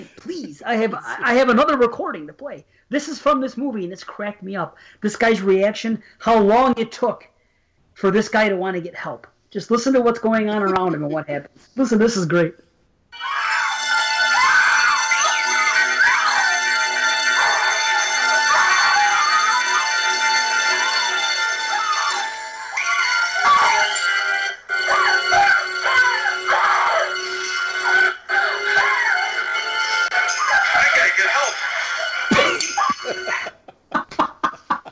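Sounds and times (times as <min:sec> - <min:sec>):
speech: 0:00.0 - 0:07.3, 0:08.0 - 0:13.4
laughter: 0:13.2 - 0:26.5, 0:27.1 - 0:34.9
person screaming in movie clip: 0:13.2 - 0:29.4.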